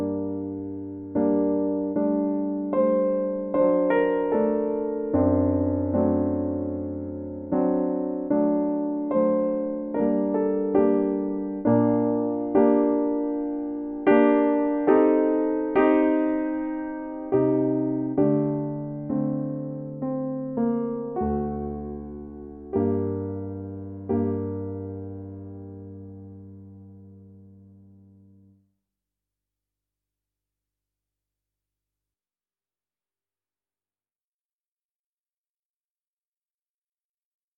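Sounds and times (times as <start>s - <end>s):
piano aria: 0.0s - 28.6s.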